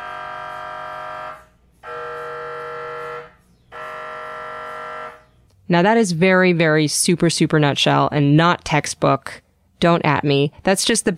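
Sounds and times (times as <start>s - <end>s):
MRI scanner loud buzzing tones: 0.0s - 5.4s
speech: 5.7s - 11.1s.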